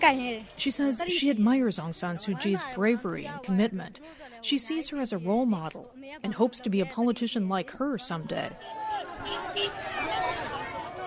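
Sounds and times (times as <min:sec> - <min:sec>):
speech: 0:00.0 - 0:10.1
crowd cheering and shouting: 0:08.6 - 0:11.0.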